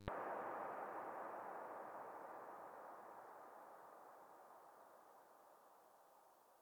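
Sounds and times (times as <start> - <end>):
energy blast: 0.1 - 6.0.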